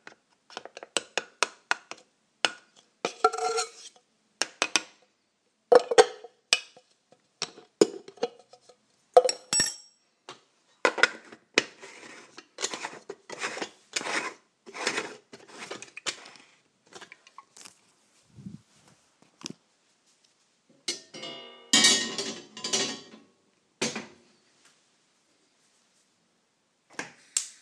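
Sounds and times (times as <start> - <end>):
Monday morning kitchen soundscape: 0.0 - 5.0, 5.7 - 18.0, 20.6 - 24.6, 27.0 - 27.6.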